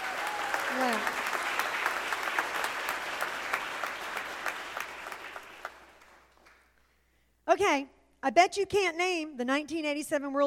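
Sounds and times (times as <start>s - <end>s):
crowd applauding: 0.0s - 6.7s
speech: 7.6s - 10.4s.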